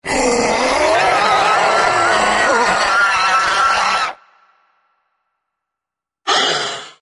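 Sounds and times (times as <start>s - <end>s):
velociraptor screeching: 0.0s - 4.2s.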